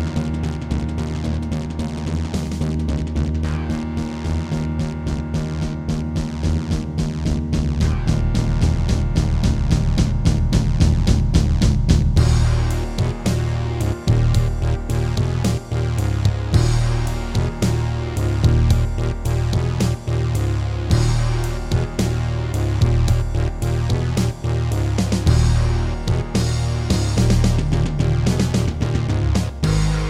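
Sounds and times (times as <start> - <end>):
Terratec MiniWaveSystem WT64 wavetable synthesizer: 0.0 - 30.0.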